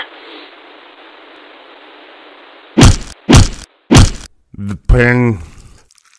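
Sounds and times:
faint hiss: 0.0 - 2.8
heavy hammer blows: 2.8 - 4.3.

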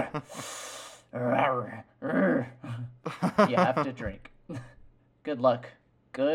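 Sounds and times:
laughter: 0.0 - 0.3, 3.1 - 4.8
man imitating Matthew McConaughey's character Denton grunting or growling: 0.0 - 0.3, 1.1 - 3.0
speech: 0.0 - 6.3
breathy exhale: 0.2 - 1.1.

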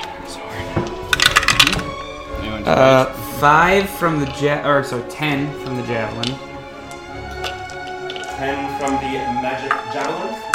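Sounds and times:
dice clattering across a hard surface: 1.1 - 1.9
speech: 2.6 - 6.5, 8.4 - 10.5.

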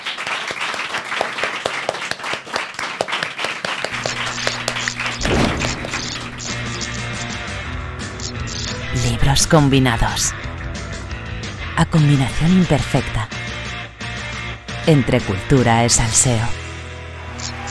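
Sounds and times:
audience applause: 0.0 - 6.8, 17.2 - 17.6
speech: 9.3 - 10.4, 11.8 - 13.4, 14.9 - 16.6.

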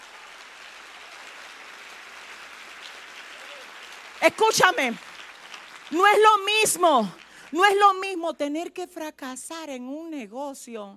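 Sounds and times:
audience applauding: 0.0 - 8.0
speech: 4.2 - 5.1, 5.9 - 10.9.

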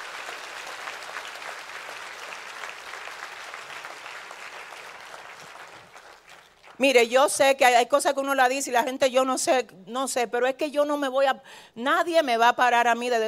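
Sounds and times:
audience applause: 0.0 - 6.8
speech: 6.8 - 13.2.

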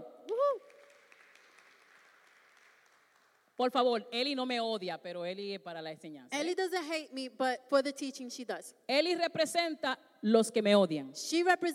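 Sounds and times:
audience applause: 0.7 - 3.3
speech: 3.6 - 11.7.

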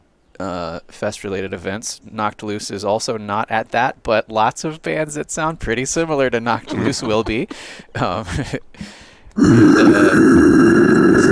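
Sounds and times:
speech: 0.4 - 11.3
laughter: 6.3 - 8.7
loud strained gagging groan: 6.6 - 8.0, 9.4 - 11.3
harsh sustained retching gush: 9.4 - 11.3.

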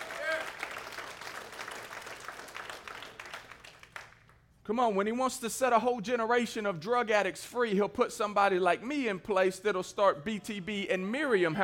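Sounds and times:
audience clapping hands: 0.0 - 4.5
speech: 4.7 - 11.6.

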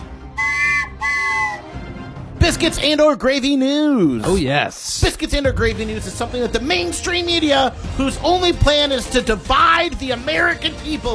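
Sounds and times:
train whistle sound effect: 0.0 - 1.8
speech: 2.5 - 11.1.

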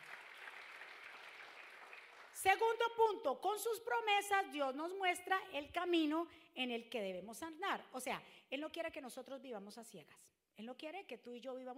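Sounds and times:
loud audience applause: 0.0 - 2.5
speech: 2.4 - 11.7.

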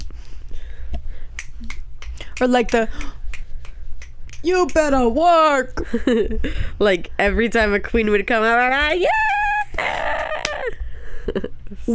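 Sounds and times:
low rumble: 0.0 - 11.9
crowd finger-snapping in place of applause: 1.4 - 4.8
speech: 2.4 - 3.2, 4.4 - 9.3.

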